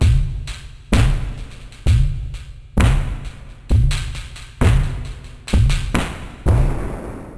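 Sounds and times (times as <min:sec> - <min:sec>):
drum loop with ghost layers: 0:00.0 - 0:07.1.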